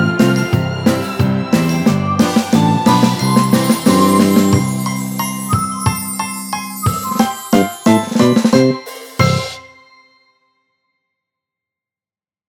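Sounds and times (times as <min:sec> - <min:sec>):
orchestra: 0:00.0 - 0:09.6.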